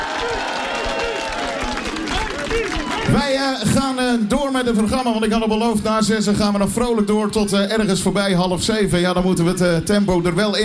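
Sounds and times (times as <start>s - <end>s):
audience applause: 0.0s - 3.6s
speech: 3.1s - 10.6s.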